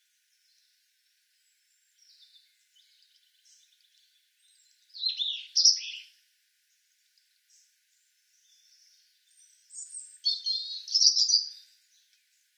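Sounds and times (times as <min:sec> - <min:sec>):
European robin Erithacus rubecula singing: 0:01.8 - 0:06.1, 0:08.3 - 0:12.4.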